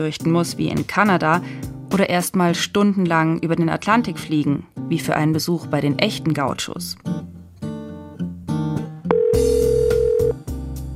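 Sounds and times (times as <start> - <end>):
speech: 0.0 - 7.2
short electronic telephone tones: 9.1 - 10.4.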